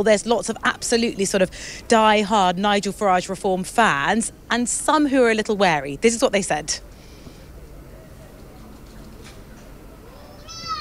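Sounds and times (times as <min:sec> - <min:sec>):
speech: 0:00.0 - 0:07.0
seagull calling: 0:10.2 - 0:10.8.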